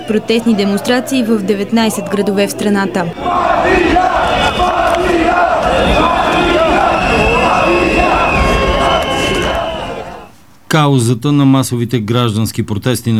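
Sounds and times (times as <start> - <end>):
protest crowd chanting: 0.0 - 10.3
speech: 0.1 - 6.2, 10.7 - 13.1.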